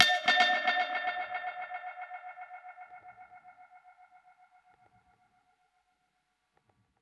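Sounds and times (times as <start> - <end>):
dub percussion hit: 0.0 - 1.4.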